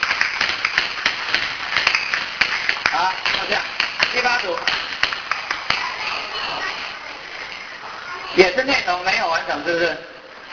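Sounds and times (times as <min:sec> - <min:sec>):
classroom of people clapping: 0:00.0 - 0:06.3
speech: 0:03.0 - 0:05.0, 0:08.4 - 0:10.1.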